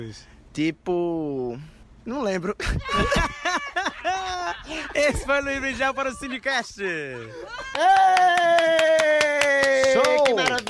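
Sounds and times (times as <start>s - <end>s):
speech: 0.0s - 10.6s
laughter: 2.6s - 8.8s
people applauding: 7.6s - 10.6s.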